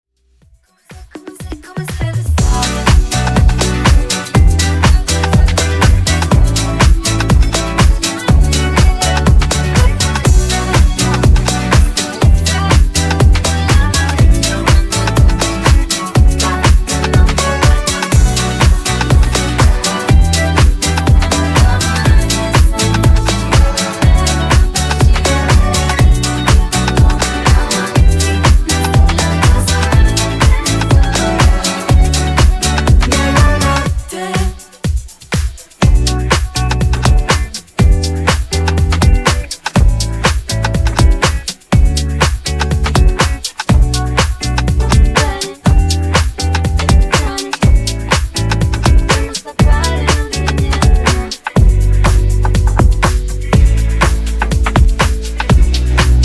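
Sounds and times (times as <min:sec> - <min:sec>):
continuous group dance groove: 0:00.4 - 0:56.2.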